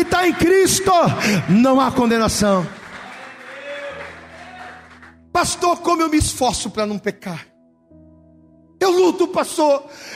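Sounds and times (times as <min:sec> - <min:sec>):
speech: 0:00.0 - 0:02.8, 0:05.4 - 0:07.5, 0:08.8 - 0:10.1
audience applauding: 0:01.3 - 0:05.2.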